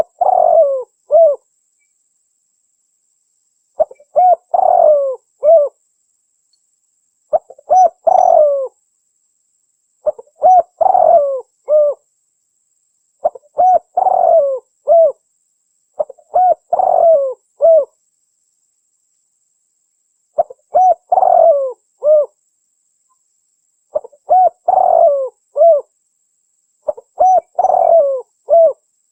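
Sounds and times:
spotted dove cooing: 0:00.0 - 0:01.4, 0:03.8 - 0:05.8, 0:07.3 - 0:08.8, 0:10.0 - 0:12.0, 0:13.2 - 0:15.2, 0:16.0 - 0:18.0, 0:20.4 - 0:22.4, 0:23.9 - 0:25.9, 0:26.8 - 0:28.8.

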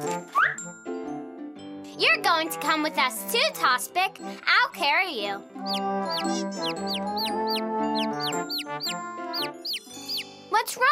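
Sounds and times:
speech: 0:02.1 - 0:09.8, 0:10.5 - 0:10.9
baby chicks cheeping: 0:05.6 - 0:10.3.

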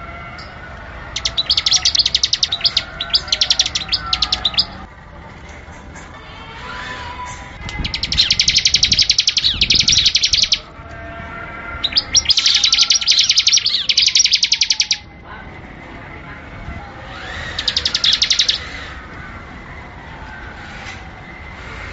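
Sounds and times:
Bar-winged Prinia giving quick high chips: 0:00.3 - 0:15.1, 0:17.0 - 0:19.0.

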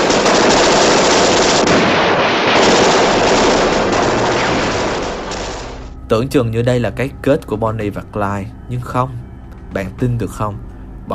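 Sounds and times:
machine gun fire: 0:00.0 - 0:05.9
speech: 0:06.1 - 0:11.1.

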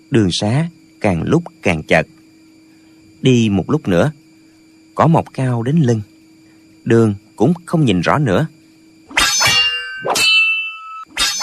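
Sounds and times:
speech: 0:00.1 - 0:02.2, 0:03.2 - 0:04.2, 0:05.0 - 0:06.1, 0:06.8 - 0:08.6
swords and weapons clashing in a fight: 0:09.1 - 0:11.4.

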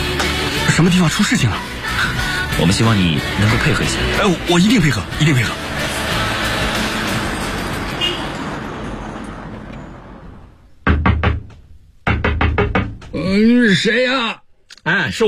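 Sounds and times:
traffic-like rumble: 0:00.7 - 0:12.1
speech: 0:00.8 - 0:05.7, 0:13.3 - 0:15.2
loud sharp knocking on a door: 0:10.9 - 0:13.2.

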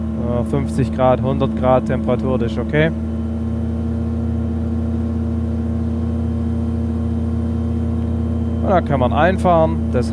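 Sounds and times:
motor glider engine droning in flight at reduced throttle: 0:00.0 - 0:10.1
speech: 0:00.4 - 0:03.1, 0:08.7 - 0:10.1.

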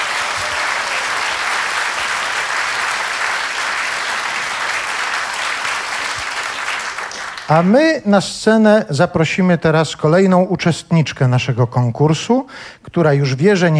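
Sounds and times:
audience applause: 0:00.0 - 0:07.7
speech: 0:07.5 - 0:13.7.

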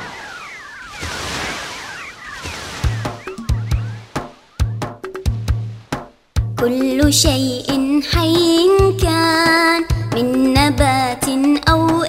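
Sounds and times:
flowing river water: 0:00.0 - 0:06.6
speech: 0:06.6 - 0:12.0.

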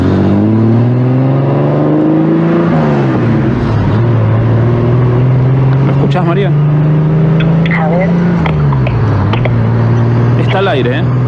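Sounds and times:
car engine purring and revving: 0:00.0 - 0:11.2.

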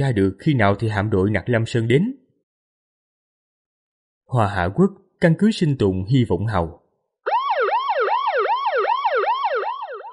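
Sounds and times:
speech: 0:00.0 - 0:02.2, 0:04.3 - 0:06.8
piercing alarm siren in a survival base: 0:07.3 - 0:10.1.

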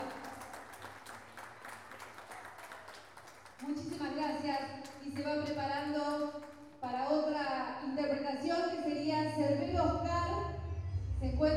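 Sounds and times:
audience applause: 0:00.0 - 0:06.6
speech: 0:03.6 - 0:10.5, 0:11.2 - 0:11.5.

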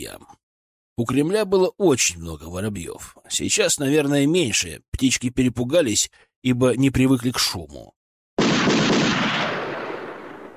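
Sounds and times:
speech: 0:00.0 - 0:00.4, 0:01.0 - 0:08.0
rifle gunfire: 0:08.4 - 0:10.5.

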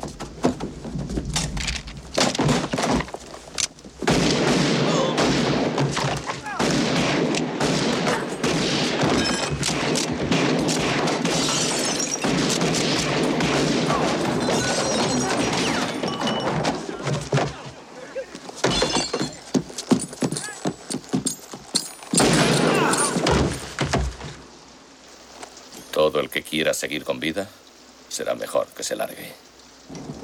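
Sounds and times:
crashing impacts: 0:00.0 - 0:17.8, 0:18.4 - 0:24.5
gunfire in a radio drama shootout: 0:04.1 - 0:16.1
speech: 0:26.8 - 0:27.5, 0:28.2 - 0:29.4.

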